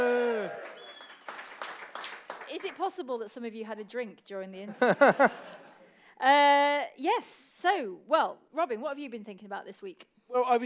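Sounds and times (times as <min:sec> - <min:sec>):
rowdy shouts: 0:00.0 - 0:00.6
audience cheering: 0:00.0 - 0:02.1
scattered clapping: 0:00.0 - 0:02.9
speech: 0:02.6 - 0:05.6, 0:06.2 - 0:10.6
laughter: 0:04.7 - 0:05.8.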